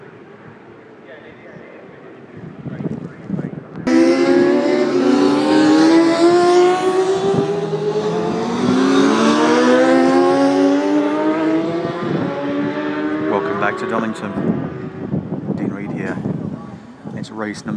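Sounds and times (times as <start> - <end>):
sport motorcycles racing: 3.8 - 17.0.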